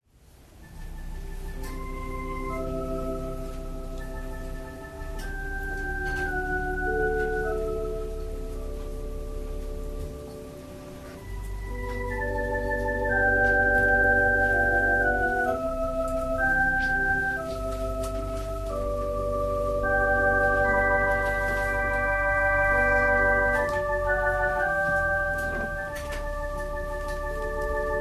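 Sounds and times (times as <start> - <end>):
organ prelude: 0.6 - 28.0.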